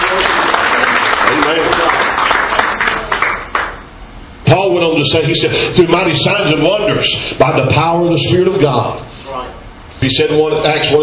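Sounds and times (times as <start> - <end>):
audience clapping in praise: 0.0 - 3.8
speech: 5.0 - 9.2, 10.0 - 11.0.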